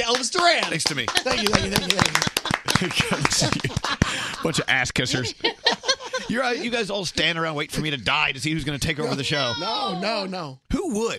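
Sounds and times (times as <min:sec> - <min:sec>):
people clapping: 0:00.0 - 0:05.0
speech: 0:00.0 - 0:11.1
laughter: 0:00.6 - 0:07.2, 0:08.8 - 0:09.8.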